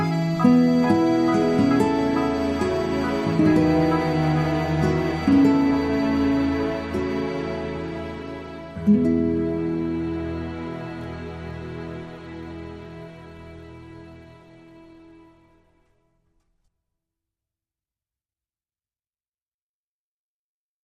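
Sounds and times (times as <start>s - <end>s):
accordion: 0.0s - 13.6s
orchestra: 0.0s - 15.9s.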